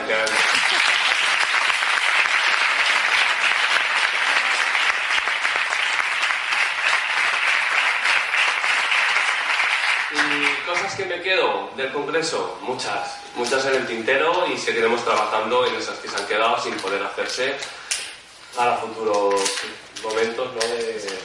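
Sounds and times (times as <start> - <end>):
audience applause: 0.0 - 10.9
speech: 11.0 - 17.8, 18.6 - 21.2.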